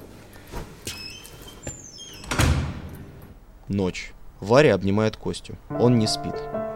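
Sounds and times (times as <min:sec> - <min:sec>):
door opening: 0:00.9 - 0:03.3
speech: 0:03.7 - 0:06.6.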